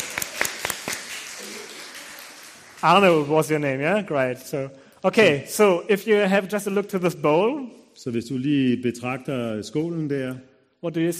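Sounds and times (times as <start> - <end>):
sparse audience applause: 0.0 - 3.7
speech: 2.8 - 11.1.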